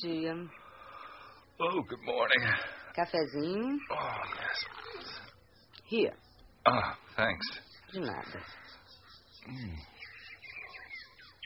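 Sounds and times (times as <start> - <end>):
speech: 0.0 - 0.6, 1.6 - 5.2, 5.9 - 8.7, 9.4 - 9.9
low hum: 0.0 - 11.4
bird calling loudly: 2.0 - 11.4.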